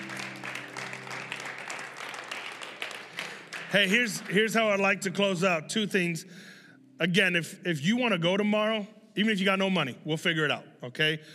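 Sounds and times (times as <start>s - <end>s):
audience clapping in praise: 0.0s - 5.5s
speech: 3.7s - 11.3s.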